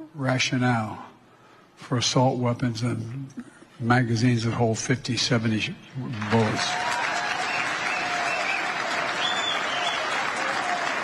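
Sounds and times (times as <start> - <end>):
speech: 0.2 - 1.1, 1.8 - 7.0
large audience applauding: 6.0 - 11.0
faint whoops: 6.6 - 11.0.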